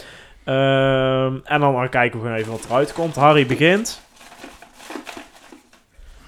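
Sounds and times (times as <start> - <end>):
speech: 0.5 - 4.0
folded paper lot drawn from a bag and unfolded, crinkling: 2.4 - 6.0.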